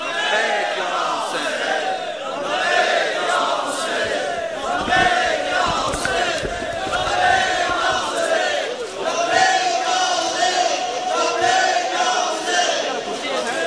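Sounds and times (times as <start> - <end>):
large crowd chanting a religious slogan in unison: 0.0 - 13.6.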